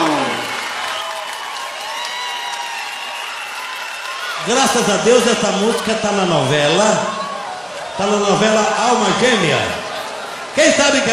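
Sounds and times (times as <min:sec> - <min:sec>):
audience applause: 0:00.0 - 0:11.1
speech: 0:04.5 - 0:07.2, 0:08.0 - 0:09.8, 0:10.6 - 0:11.1.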